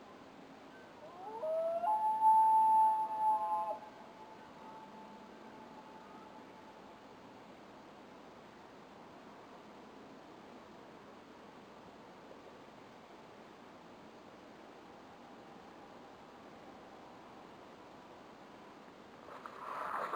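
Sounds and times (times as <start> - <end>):
loons calling at night: 1.0 - 5.2.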